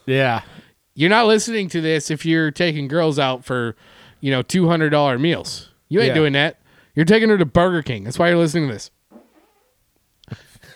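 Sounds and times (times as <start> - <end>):
speech: 0.0 - 9.0
faint hum: 0.0 - 10.7
fart: 9.1 - 9.8.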